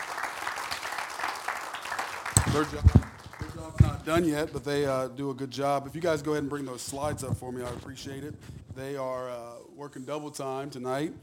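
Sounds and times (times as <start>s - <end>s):
audience applause: 0.0s - 4.0s
speech: 2.6s - 3.0s, 3.7s - 11.2s.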